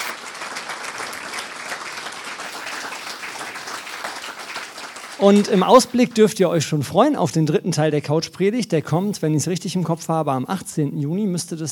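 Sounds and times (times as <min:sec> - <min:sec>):
audience applause: 0:00.0 - 0:06.0
speech: 0:05.2 - 0:11.7.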